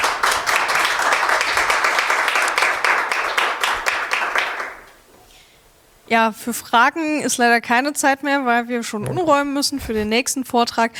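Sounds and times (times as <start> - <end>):
crowd applauding: 0.0 - 4.9
speech: 6.1 - 10.9.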